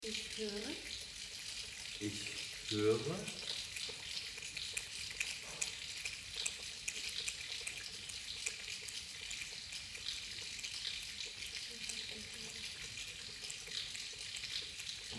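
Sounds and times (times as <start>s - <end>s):
speech: 0.0s - 1.0s, 2.0s - 3.5s
rain pattering on roof: 0.0s - 15.1s.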